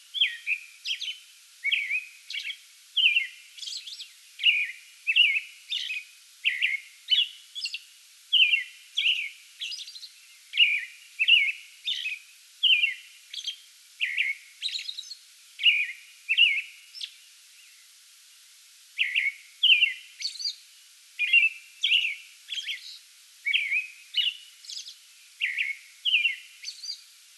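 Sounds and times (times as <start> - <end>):
American robin singing: 0.0 - 17.9, 19.0 - 20.6, 21.2 - 27.1.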